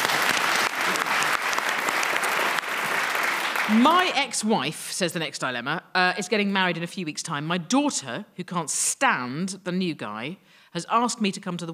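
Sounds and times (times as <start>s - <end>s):
audience applause: 0.0s - 4.1s
speech: 3.7s - 11.7s.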